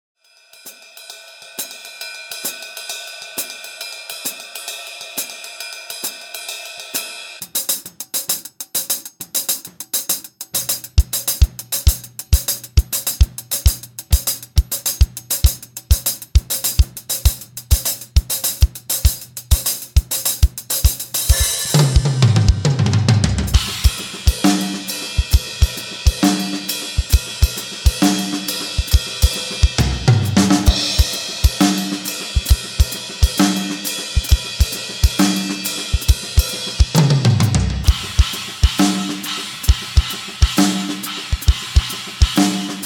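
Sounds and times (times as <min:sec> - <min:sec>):
dreamscape drum track: 0:00.4 - 0:42.8.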